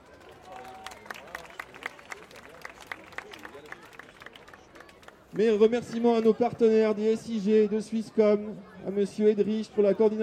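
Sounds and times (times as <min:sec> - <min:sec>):
audience applauding: 0:00.0 - 0:05.1
speech: 0:05.4 - 0:10.2.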